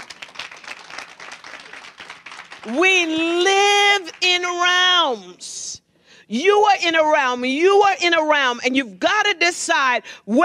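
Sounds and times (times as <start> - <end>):
audience applause: 0.0 - 2.8
speech: 2.6 - 3.5, 4.3 - 10.4.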